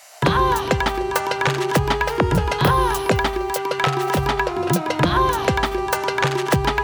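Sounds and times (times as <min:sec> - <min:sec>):
new wave dabke music: 0:00.2 - 0:06.8.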